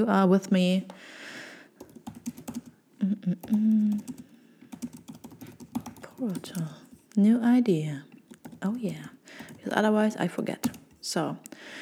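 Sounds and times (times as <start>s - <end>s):
speech: 0.0s - 1.2s, 3.0s - 4.3s, 6.2s - 11.8s
typing a note on a computer keyboard: 1.8s - 2.7s, 3.4s - 7.0s, 8.3s - 11.0s
person murmuring and humming: 3.0s - 4.3s.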